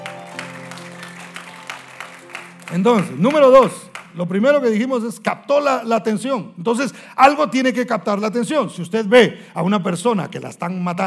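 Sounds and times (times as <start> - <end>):
audience applause: 0.0 - 4.2
speech: 2.7 - 11.0.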